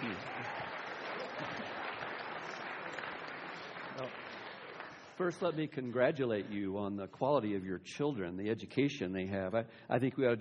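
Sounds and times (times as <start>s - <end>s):
audience applause welcoming a seminary president to the stage: 0.0s - 5.4s
speech: 5.2s - 10.4s.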